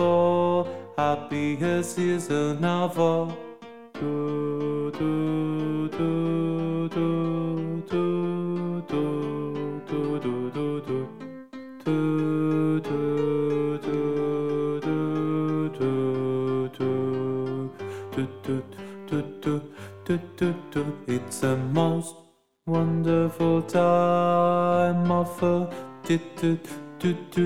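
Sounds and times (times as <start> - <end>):
alto voice singing in a show choir: 0.0 - 27.4.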